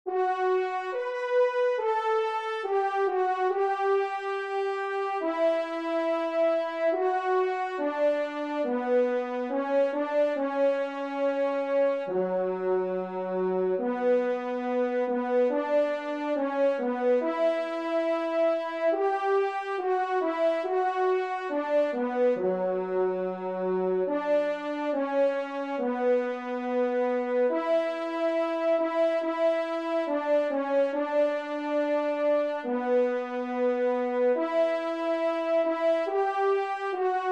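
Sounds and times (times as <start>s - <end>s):
trompe playing: 0.1s - 37.3s.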